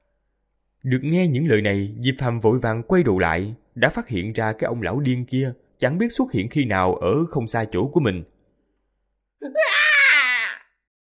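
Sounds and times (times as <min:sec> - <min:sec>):
speech: 0:00.8 - 0:08.3, 0:09.4 - 0:09.7
anguished scream sound effect for a fantasy audiobook: 0:09.4 - 0:10.9.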